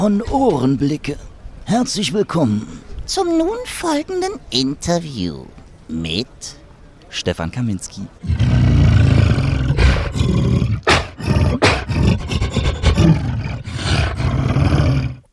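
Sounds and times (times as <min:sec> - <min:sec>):
speech: 0:00.0 - 0:09.2
man imitating King Kong roaring: 0:08.2 - 0:15.2.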